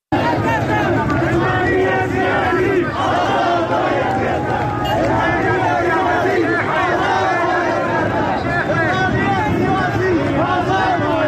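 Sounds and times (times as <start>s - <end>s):
protest crowd chanting anti-government slogans in Zahedan: 0.1s - 11.2s.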